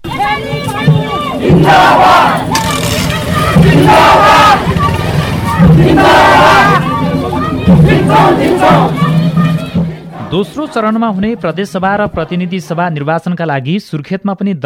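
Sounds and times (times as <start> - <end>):
band music in an election rally procession: 0.0 - 11.6
crowd chanting slogans at an election rally procession: 0.0 - 13.2
constant roar of voices in the street: 0.9 - 11.0
speech: 10.3 - 14.6.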